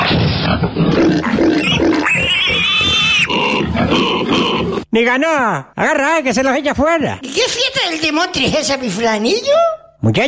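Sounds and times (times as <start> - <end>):
pig squealing and grunting: 0.0 - 4.9
speech: 0.6 - 1.8, 4.9 - 10.2.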